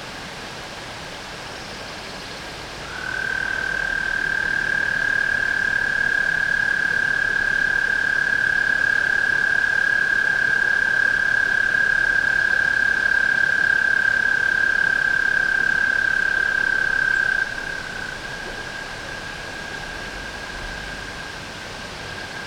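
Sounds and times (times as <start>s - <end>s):
hiss: 0.0s - 22.4s
tree frog trilling: 2.9s - 21.3s.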